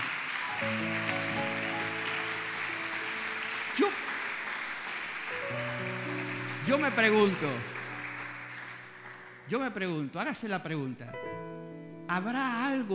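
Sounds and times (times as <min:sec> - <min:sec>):
audience applause: 0:00.0 - 0:09.6
speech: 0:06.7 - 0:07.7, 0:09.5 - 0:11.2, 0:12.1 - 0:12.9.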